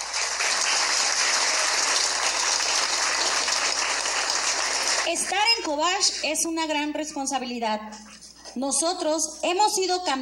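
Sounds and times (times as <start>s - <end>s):
crowd applauding: 0.0s - 5.4s
speech: 5.1s - 10.2s.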